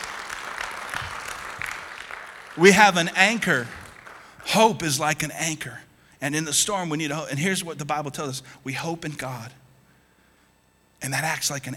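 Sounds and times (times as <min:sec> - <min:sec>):
audience applause: 0:00.0 - 0:05.0
speech: 0:02.6 - 0:03.8, 0:04.4 - 0:09.6, 0:11.0 - 0:11.7.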